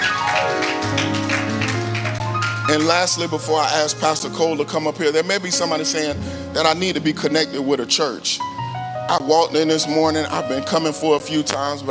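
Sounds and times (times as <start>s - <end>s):
audience clapping in rhythm: 0.0s - 3.3s
organ or keyboard chords: 0.0s - 11.8s
speech: 2.7s - 11.8s.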